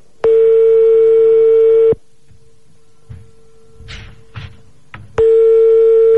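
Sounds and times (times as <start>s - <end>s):
landline telephone ringing tone: 0.2s - 2.0s, 5.2s - 6.1s
handling thumps: 2.2s - 5.4s.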